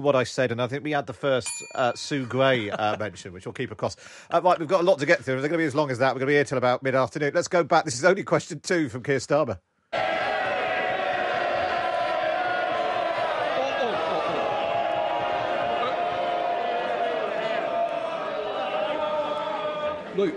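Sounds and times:
speech: 0.0s - 9.7s, 20.2s - 20.3s
laughter: 2.3s - 3.2s, 12.1s - 16.5s
MPs chanting in the House of Commons: 10.0s - 20.3s.

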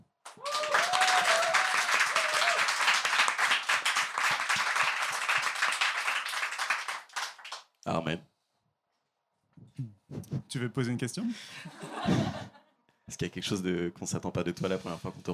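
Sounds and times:
audience applause: 0.3s - 7.6s
speech: 7.9s - 8.3s, 9.8s - 15.3s
laughter: 11.3s - 12.7s.

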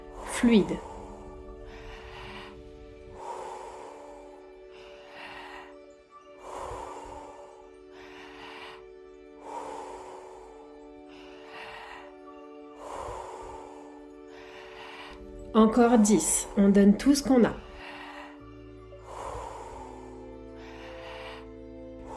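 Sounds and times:
deep rhythmic breathing during guided Wim Hof breathwork: 0.0s - 22.1s
sustained musical drone: 0.0s - 22.1s
speech: 0.4s - 0.9s, 15.8s - 17.7s.

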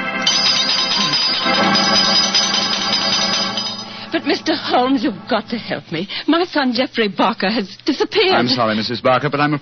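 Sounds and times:
doorbell ringing: 0.2s - 4.5s
speech: 4.8s - 9.6s.

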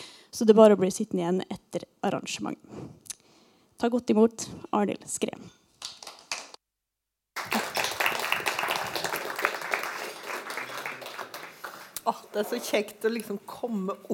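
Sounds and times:
speech: 0.4s - 3.0s, 3.8s - 5.6s, 12.0s - 14.1s
audience applause: 7.4s - 12.7s.

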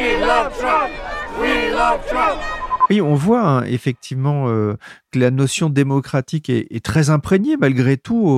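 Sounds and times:
large crowd of marchers chanting a slogan in unison: 0.0s - 2.9s
speech: 0.0s - 8.3s.

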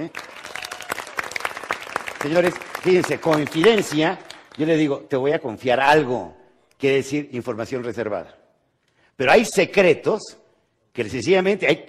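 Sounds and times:
speech: 0.0s - 0.4s, 2.2s - 8.4s, 9.2s - 10.4s, 11.0s - 11.8s
audience applause: 0.0s - 4.8s.

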